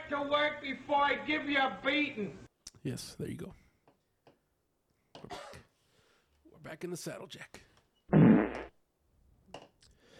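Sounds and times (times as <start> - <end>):
speech: 0.1 - 3.6, 6.6 - 7.7
loud low rasping fart: 8.1 - 8.8.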